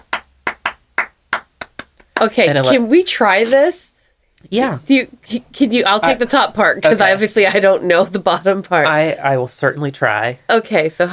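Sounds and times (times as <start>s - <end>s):
hand clapping in a clapping game: 0.0s - 2.8s
speech: 2.2s - 11.1s.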